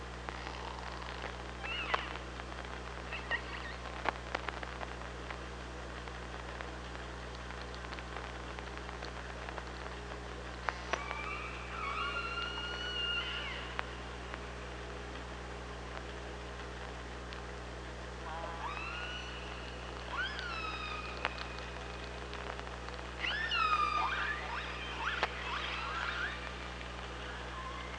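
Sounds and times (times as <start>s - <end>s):
low hum: 0.0s - 27.9s
killer whale calls: 10.9s - 13.8s, 18.3s - 21.7s, 23.2s - 26.8s.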